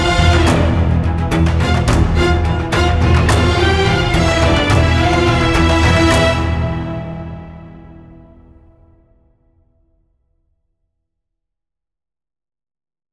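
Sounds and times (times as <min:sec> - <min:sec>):
string instruments playing: 0:00.0 - 0:08.5.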